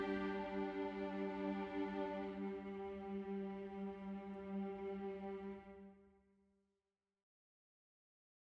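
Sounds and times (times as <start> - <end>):
flute: 0.0 - 3.0
strings: 0.0 - 6.0.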